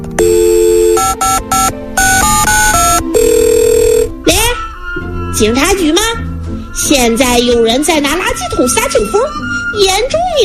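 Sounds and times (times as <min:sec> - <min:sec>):
telephone dialing and ringing: 0:00.2 - 0:04.1
speech: 0:01.2 - 0:03.5, 0:05.4 - 0:06.2, 0:06.8 - 0:10.4.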